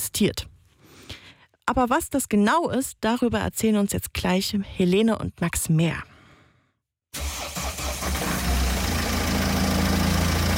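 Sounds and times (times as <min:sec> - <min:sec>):
speech: 0:00.2 - 0:00.5, 0:01.7 - 0:06.1
car engine running on a drive through desert east from Cairo: 0:07.7 - 0:10.5.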